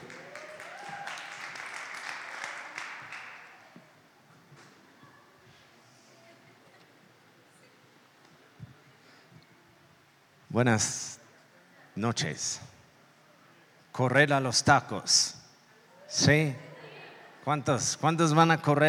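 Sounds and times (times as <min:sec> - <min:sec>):
applause: 0:00.0 - 0:03.9
speech: 0:10.6 - 0:11.2, 0:12.0 - 0:12.7, 0:14.0 - 0:15.4, 0:16.1 - 0:16.7, 0:17.5 - 0:18.8.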